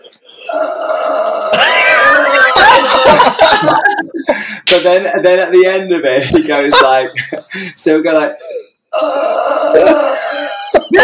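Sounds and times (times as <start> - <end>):
person imitating a snore with held breath: 0.4 - 1.6, 9.0 - 10.4
laughter: 1.6 - 4.5, 6.2 - 7.7, 10.4 - 11.0
speech: 3.1 - 10.2.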